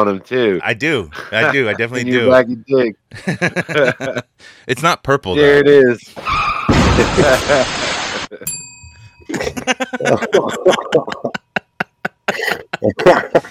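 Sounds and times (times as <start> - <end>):
speech: 0.0 - 8.6, 9.3 - 11.4, 12.3 - 13.5
laughter: 1.1 - 2.4, 3.1 - 4.4, 6.8 - 8.4, 9.3 - 13.5
bell ringing: 8.4 - 10.4.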